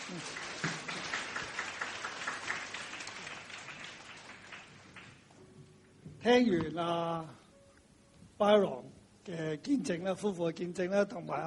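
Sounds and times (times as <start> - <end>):
audience applause: 0.0 - 5.3
speech: 0.1 - 0.4, 6.2 - 7.4, 8.4 - 11.4.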